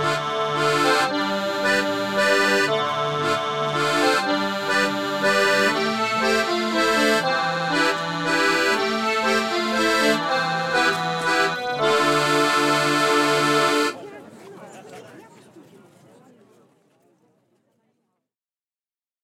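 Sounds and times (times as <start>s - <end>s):
accordion: 0.0s - 14.0s.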